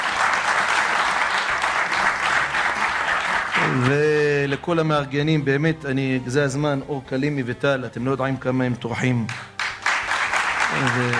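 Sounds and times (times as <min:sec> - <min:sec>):
crowd applauding: 0:00.0 - 0:04.5, 0:09.2 - 0:11.1
speech: 0:03.7 - 0:09.4, 0:10.7 - 0:11.1.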